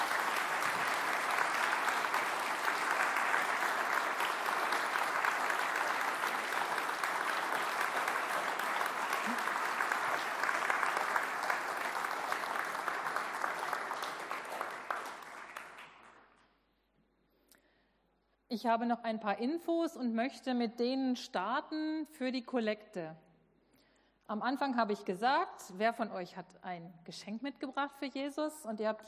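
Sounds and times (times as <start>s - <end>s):
audience applause: 0.0s - 16.3s
speech: 18.5s - 23.2s, 24.3s - 29.0s.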